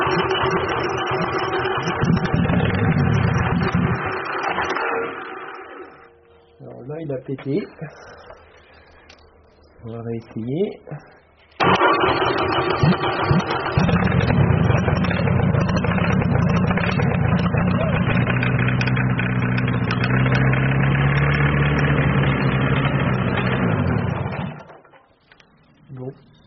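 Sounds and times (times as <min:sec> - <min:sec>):
car engine starting and idling unevenly: 0:00.0 - 0:06.1, 0:11.6 - 0:24.8
speech: 0:07.2 - 0:08.3, 0:09.8 - 0:11.2, 0:12.0 - 0:14.3.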